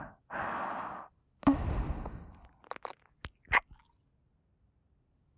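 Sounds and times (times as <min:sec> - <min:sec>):
oral sex sounds: 0:01.4 - 0:03.9
ear kissing sounds: 0:02.6 - 0:03.9.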